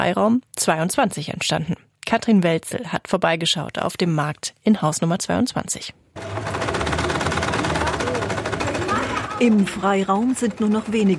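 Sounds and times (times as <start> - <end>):
speech: 0.0 - 6.7, 9.4 - 11.1
several sewing machines running: 6.2 - 11.1.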